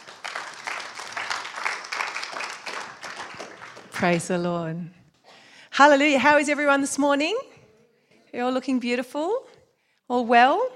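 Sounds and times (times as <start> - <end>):
audience clapping: 0.0 - 4.4
speech: 4.0 - 5.0, 5.8 - 7.5, 8.3 - 9.5, 10.1 - 10.7.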